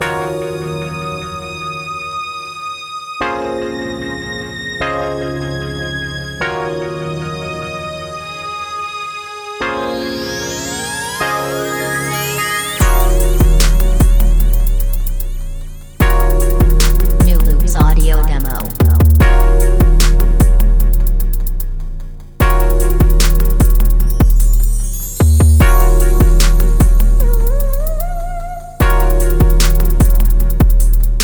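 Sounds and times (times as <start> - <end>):
music loops: 9.7 - 31.2.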